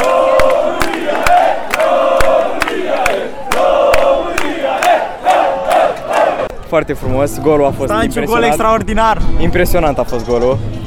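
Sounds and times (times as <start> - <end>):
football fans cheering and chanting after a goal: 0.0 - 6.6
speech: 6.7 - 10.8.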